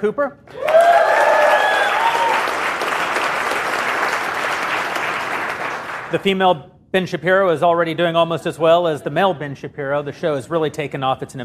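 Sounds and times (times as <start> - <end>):
speech: 0.0 - 0.8, 6.1 - 11.4
crowd applauding: 0.5 - 6.2.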